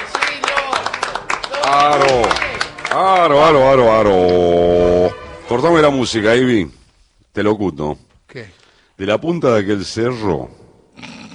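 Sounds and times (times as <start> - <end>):
applause: 0.0 - 4.6
speech: 3.0 - 4.9, 5.5 - 6.8, 7.4 - 11.1.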